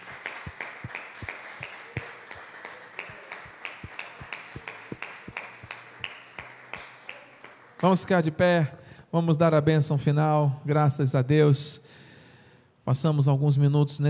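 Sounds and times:
crowd murmur: 0:00.0 - 0:07.8
audience clapping rhythmically: 0:00.0 - 0:08.5
speech: 0:07.8 - 0:11.8, 0:12.9 - 0:14.0.

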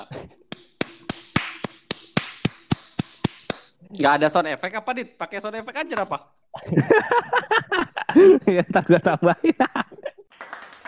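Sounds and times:
quick hand clapping: 0:00.5 - 0:03.7, 0:10.4 - 0:10.8
speech: 0:03.9 - 0:09.9
laughter: 0:06.6 - 0:10.2.

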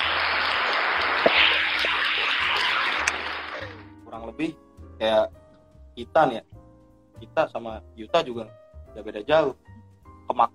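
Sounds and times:
crowd applause: 0:00.0 - 0:03.8
speech: 0:04.3 - 0:05.4, 0:06.0 - 0:06.6, 0:07.2 - 0:09.6, 0:10.3 - 0:10.5.

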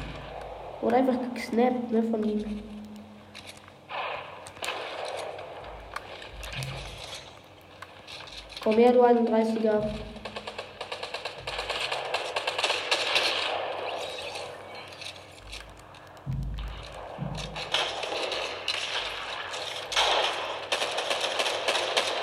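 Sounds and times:
speech: 0:00.8 - 0:02.8, 0:08.6 - 0:10.1
video game pistol shots: 0:03.9 - 0:07.4, 0:10.0 - 0:15.4, 0:16.5 - 0:22.2.

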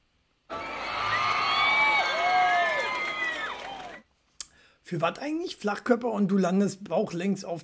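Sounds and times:
inserted applause and cheering sound effect: 0:00.5 - 0:04.1
speech: 0:04.9 - 0:07.6.

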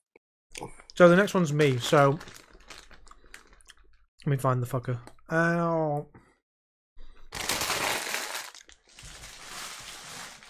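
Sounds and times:
speech: 0:00.6 - 0:02.4, 0:04.2 - 0:06.2
popcorn packaging rustling: 0:01.6 - 0:03.6, 0:07.3 - 0:10.4.

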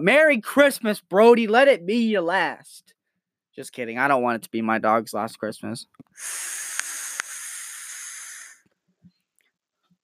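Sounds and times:
speech: 0:00.0 - 0:03.0, 0:03.6 - 0:06.8
vape exhale hiss: 0:06.1 - 0:08.7.

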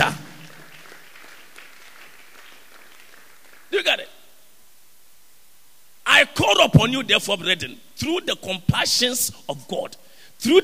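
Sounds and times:
audience clapping: 0:00.0 - 0:04.0
speech: 0:06.4 - 0:10.6.

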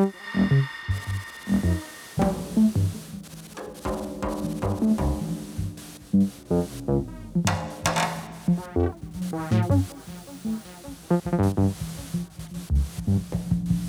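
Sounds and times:
hissing bursts of white noise: 0:00.0 - 0:12.4
experimental buzzing throbbing electronic tones: 0:00.0 - 0:12.8.

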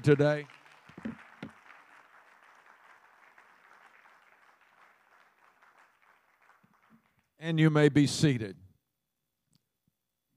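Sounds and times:
speech: 0:00.0 - 0:01.2, 0:07.4 - 0:08.6
audience clapping hands: 0:00.0 - 0:07.7.

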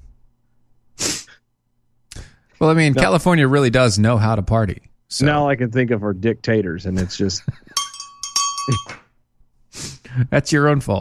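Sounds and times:
speech: 0:02.6 - 0:07.8, 0:08.7 - 0:09.0, 0:10.2 - 0:11.0
small bell ringing: 0:07.7 - 0:09.0.

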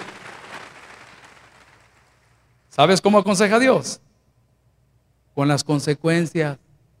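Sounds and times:
audience applauding: 0:00.0 - 0:02.1
speech: 0:02.8 - 0:04.1, 0:05.4 - 0:06.6.

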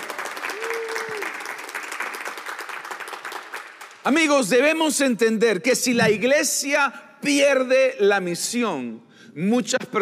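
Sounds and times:
audience applause: 0:00.0 - 0:04.0
speech: 0:04.1 - 0:10.0.

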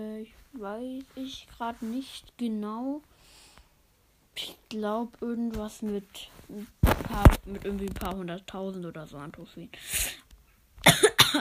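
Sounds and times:
speech: 0:00.0 - 0:03.2, 0:04.4 - 0:10.2
person coughing: 0:10.8 - 0:11.3.

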